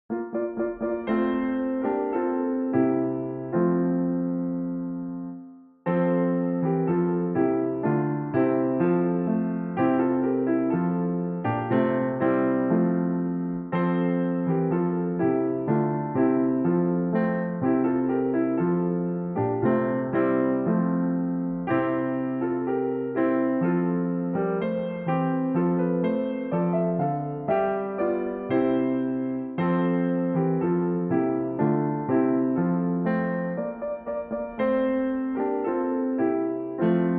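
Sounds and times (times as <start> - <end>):
Christmas carol on piano: 0.0 - 37.1.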